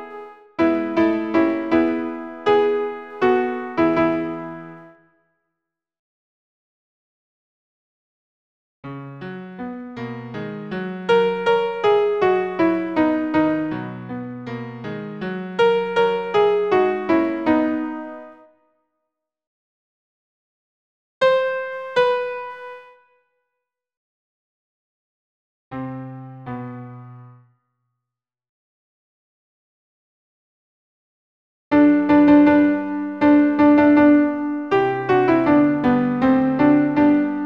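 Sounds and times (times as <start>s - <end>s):
alto piano accompaniment: 0.0s - 5.0s, 8.9s - 18.4s, 21.2s - 23.0s, 25.7s - 27.4s, 31.7s - 37.4s.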